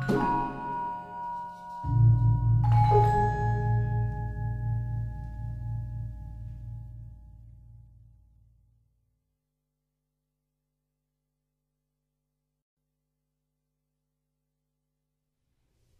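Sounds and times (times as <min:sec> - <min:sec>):
Javanese gamelan music: 0:00.0 - 0:07.2.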